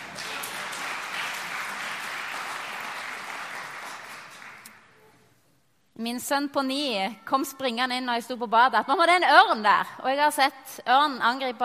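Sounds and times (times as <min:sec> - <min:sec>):
audience applause: 0:00.0 - 0:04.7
speech: 0:06.0 - 0:11.6.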